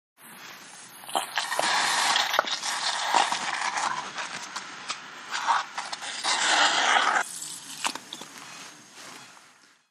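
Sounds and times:
wound irrigation in an operating room: 0.2 - 8.3
medical suction in an operating room: 1.0 - 4.6, 5.3 - 8.2.

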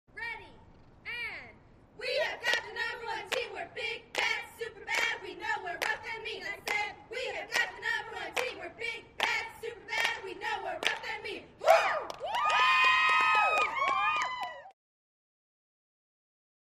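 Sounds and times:
cheerleaders cheering: 2.0 - 14.7.

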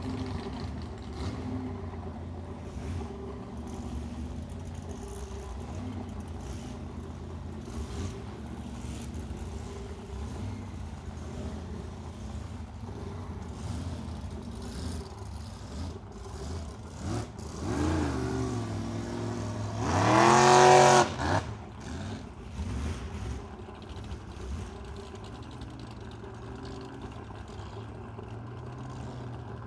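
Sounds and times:
drag boats racing: 0.0 - 29.6.

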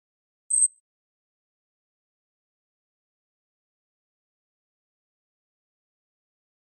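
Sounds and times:
electronic flash beep: 0.5 - 0.7.

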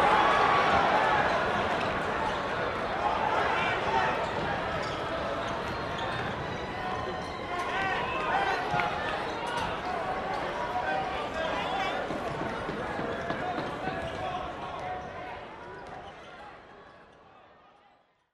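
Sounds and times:
gym crowd cheering: 0.0 - 17.4.

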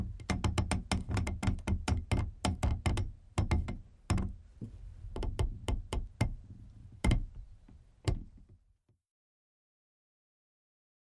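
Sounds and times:
hemp rope creaking: 0.0 - 8.6.

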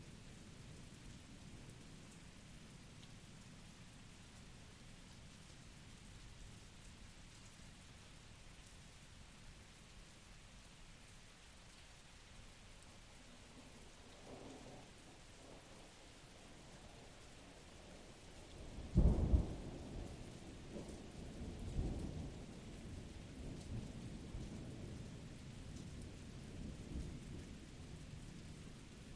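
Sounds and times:
rain at Blue Mountain Lake Adirondacks New York: 0.0 - 29.1
continuous thunder at Blue Mountain Lake Adirondacks New York: 18.6 - 28.1.

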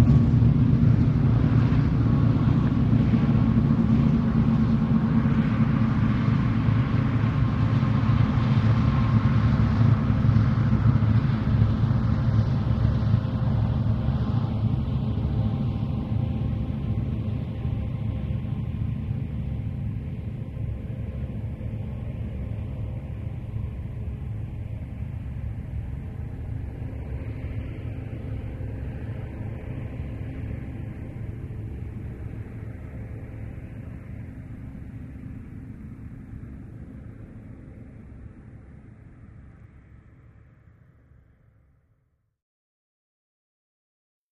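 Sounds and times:
medium distant diesel train passing: 0.0 - 35.4.

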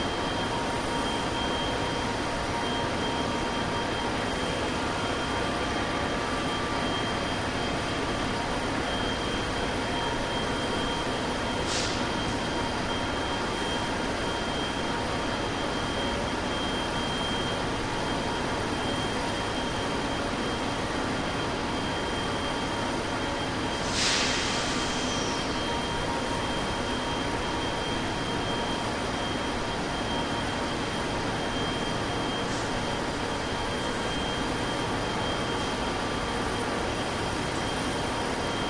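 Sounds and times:
diesel train idling: 0.0 - 38.5.

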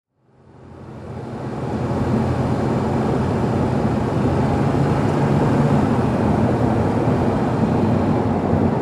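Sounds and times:
SUV at 55 to 65 mph slowing down: 1.0 - 8.7.

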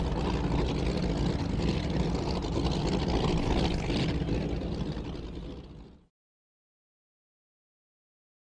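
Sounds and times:
offshore power boat engine: 0.0 - 6.0.

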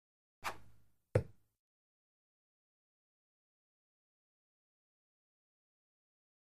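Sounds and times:
dart throw with feather whoosh: 0.4 - 0.8
dart hitting target: 0.4 - 1.4.

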